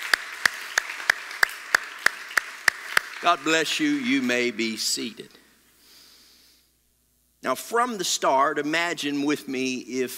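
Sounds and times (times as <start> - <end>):
audience applauding: 0.0 - 5.0
speech: 3.2 - 5.4, 7.4 - 10.1.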